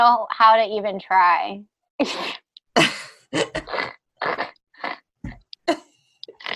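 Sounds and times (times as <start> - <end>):
speech: 0.0 - 3.9
person snorting like a pig: 2.3 - 5.0, 6.2 - 6.5.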